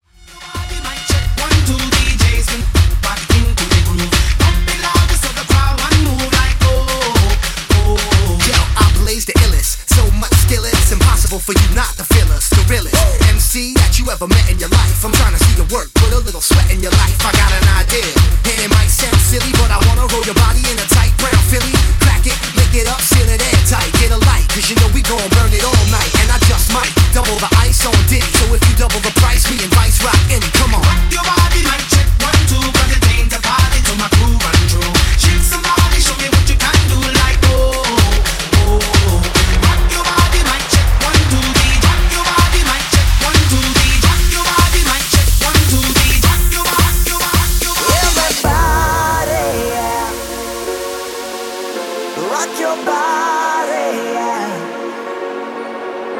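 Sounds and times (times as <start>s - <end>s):
clean party segue music: 0.0s - 56.1s.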